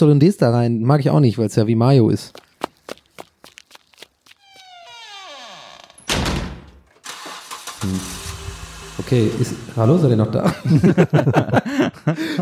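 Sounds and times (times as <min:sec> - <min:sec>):
speech: 0:00.0 - 0:02.4, 0:07.8 - 0:08.2, 0:09.0 - 0:12.4
footsteps: 0:02.2 - 0:05.4
car engine whining and driving off: 0:07.1 - 0:10.4
laughter: 0:10.2 - 0:12.4.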